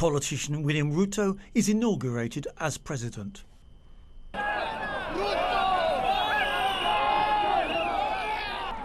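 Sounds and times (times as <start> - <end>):
speech: 0.0 - 3.5
crowd pushing into Kasarani Stadium: 4.4 - 8.8.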